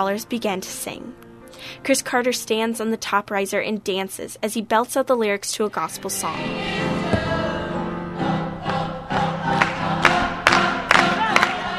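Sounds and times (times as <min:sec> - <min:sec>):
speech: 0:00.0 - 0:07.4
audience cheering and clapping after performance: 0:08.6 - 0:11.7.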